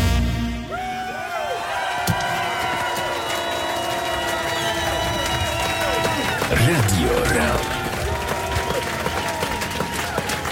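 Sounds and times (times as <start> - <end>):
audience applause: 1.0 - 10.5
speech: 6.6 - 7.7.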